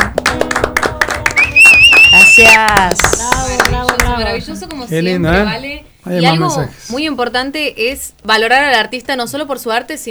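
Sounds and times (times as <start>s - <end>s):
scattered audience clapping: 0.0s - 4.8s
talking voices: 0.8s - 7.0s
sharp high whistle: 1.2s - 3.4s
speech: 2.6s - 3.2s, 4.3s - 10.0s.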